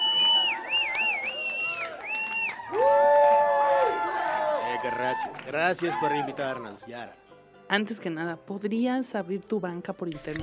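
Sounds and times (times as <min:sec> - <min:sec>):
applause: 0:00.0 - 0:06.4
crowd cheering: 0:00.0 - 0:06.7
speech: 0:04.9 - 0:10.4.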